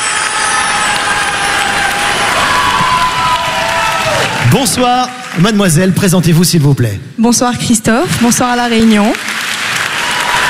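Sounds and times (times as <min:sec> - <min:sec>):
large audience cheering: 0:00.0 - 0:05.5, 0:09.4 - 0:10.4
large audience applauding: 0:00.0 - 0:06.1, 0:08.7 - 0:10.4
speech: 0:04.6 - 0:09.3.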